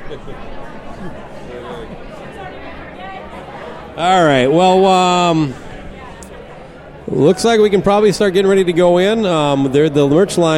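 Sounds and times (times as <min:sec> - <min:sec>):
crowd chatter at a live venue: 0:00.0 - 0:10.5
speech: 0:00.1 - 0:05.6, 0:07.1 - 0:10.5.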